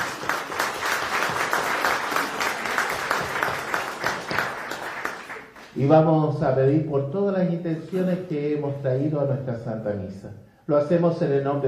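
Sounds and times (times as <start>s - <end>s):
audience applause: 0.0s - 5.7s
speech: 5.8s - 11.6s.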